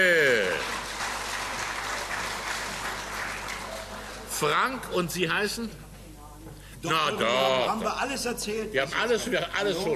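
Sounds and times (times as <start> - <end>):
audience applause: 0.0 - 4.5
speech: 4.4 - 5.9, 6.8 - 9.9.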